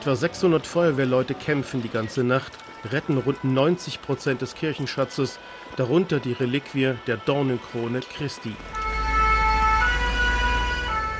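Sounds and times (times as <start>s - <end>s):
speech: 0.0s - 8.8s
emergency vehicle sirens at the fire: 0.0s - 11.1s
constant low rumble of traffic or engines: 8.5s - 11.1s.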